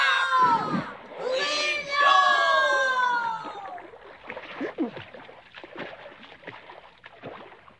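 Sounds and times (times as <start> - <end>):
voices crying out: 0.0 - 3.8
oars splashing as a boat is rowed: 0.0 - 7.7.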